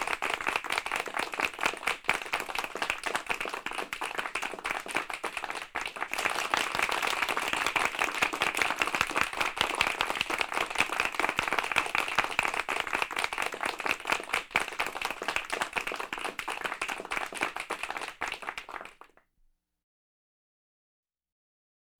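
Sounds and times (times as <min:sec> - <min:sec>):
loud group applauding: 0:00.0 - 0:19.2.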